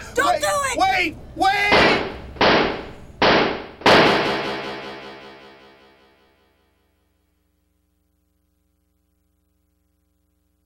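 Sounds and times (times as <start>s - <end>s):
speech: 1.0s - 1.7s
police gunshots in a radio drama: 1.7s - 5.8s.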